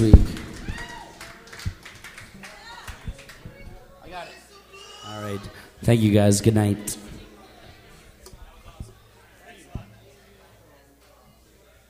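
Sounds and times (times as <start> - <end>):
round of applause: 0.0 - 3.6
speech: 5.8 - 7.0.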